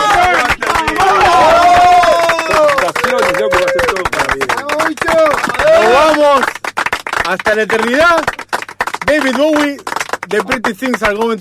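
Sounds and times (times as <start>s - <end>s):
people whooping and cheering: 0.0s - 6.4s
loud applause: 0.0s - 11.3s
speech: 7.3s - 8.4s, 9.1s - 11.3s.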